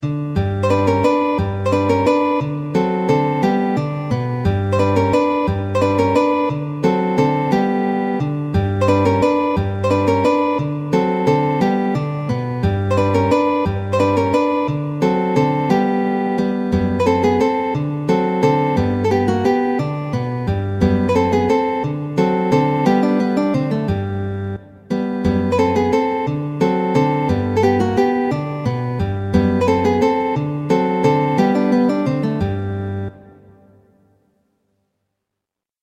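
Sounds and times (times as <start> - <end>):
guitar waltzes: 0.0 - 33.8.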